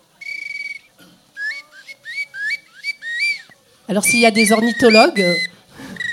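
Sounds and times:
small wooden whistle imitating a nightingale: 0.2 - 6.1
speech: 3.9 - 5.5.

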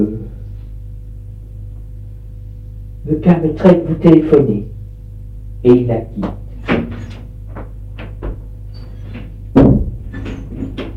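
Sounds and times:
speech: 0.0 - 0.4, 3.0 - 4.7, 5.6 - 6.4
door closing shut: 6.2 - 10.9.

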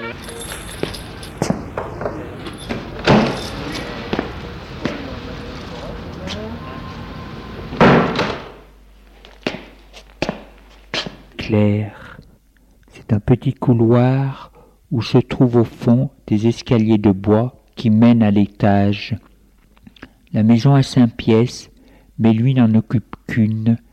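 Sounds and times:
keys jangling: 0.0 - 4.2
low murmur: 0.0 - 7.8
apartment door pushed open: 0.8 - 4.2, 7.7 - 8.6
speech: 11.5 - 12.0, 13.1 - 19.3, 20.3 - 23.8.

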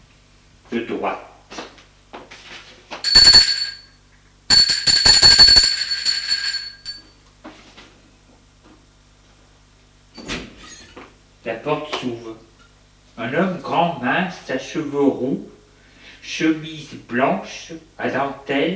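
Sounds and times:
speech: 0.7 - 1.3, 11.6 - 12.5, 13.2 - 15.6, 16.2 - 18.7
doorbell ringing: 3.0 - 3.9, 4.5 - 7.1.

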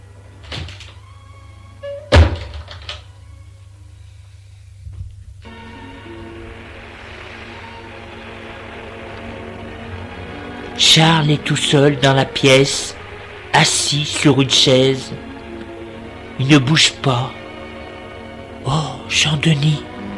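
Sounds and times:
low steady hum: 0.0 - 20.1
door banging shut: 0.4 - 1.0, 1.9 - 3.1
speech: 10.8 - 13.0, 13.6 - 15.3, 16.4 - 17.4, 18.7 - 19.9.

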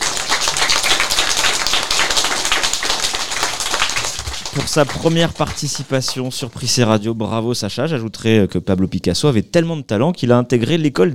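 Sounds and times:
applause for a young presenter: 0.0 - 6.6
speech: 4.6 - 11.1.

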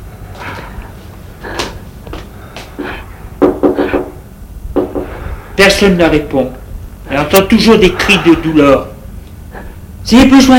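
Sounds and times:
faint hum: 0.0 - 10.5
knocking on a wooden bedroom door: 3.4 - 4.2, 4.8 - 5.1
speech: 5.8 - 8.9, 10.0 - 10.5.

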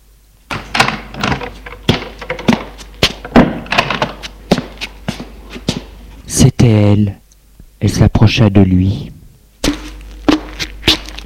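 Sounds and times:
door opening with wooden thunks and latch clicks: 0.5 - 4.2
speech: 6.4 - 7.2, 7.8 - 9.2.

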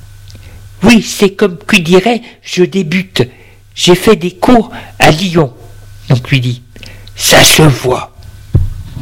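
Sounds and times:
speech: 0.8 - 8.1
knocking on a door: 8.6 - 8.8.

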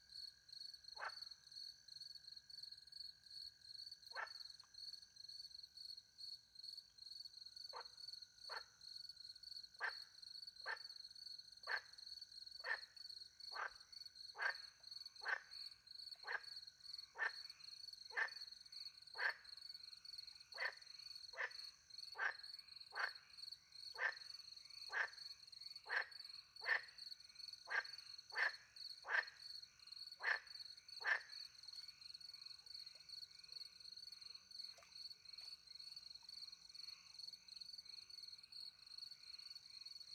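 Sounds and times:
frog croaking: 1.0 - 1.4, 4.1 - 4.6, 7.7 - 8.7, 9.8 - 10.9, 11.6 - 12.0, 12.6 - 38.1.

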